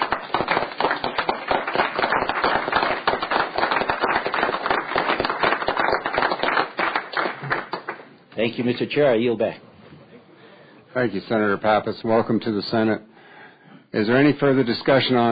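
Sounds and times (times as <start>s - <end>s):
people applauding: 0.0s - 8.1s
speech: 8.4s - 9.6s, 10.9s - 13.1s, 14.0s - 15.3s.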